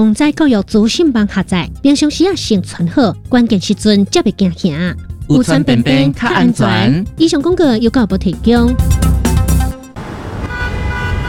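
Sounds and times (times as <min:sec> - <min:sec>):
speech: 0:00.0 - 0:09.0
fire engine horn in traffic: 0:10.4 - 0:11.2.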